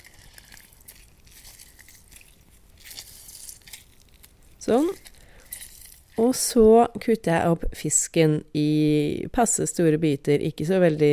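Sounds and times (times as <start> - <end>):
squeezing lime juice into a small bowl: 0.0 - 6.3
speech: 4.6 - 5.1, 6.2 - 11.1.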